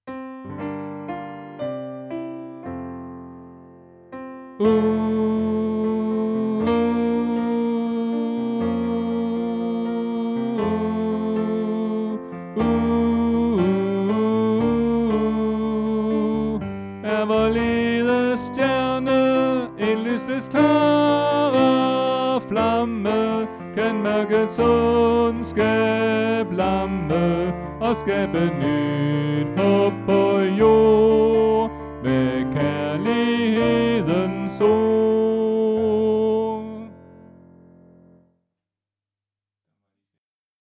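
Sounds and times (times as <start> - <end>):
tenor singing: 4.6 - 37.0.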